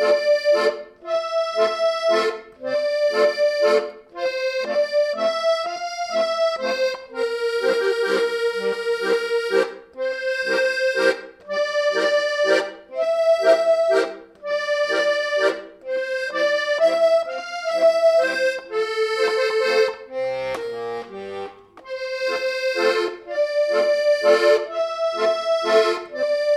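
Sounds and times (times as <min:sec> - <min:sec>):
musette music: 0:00.0 - 0:26.5.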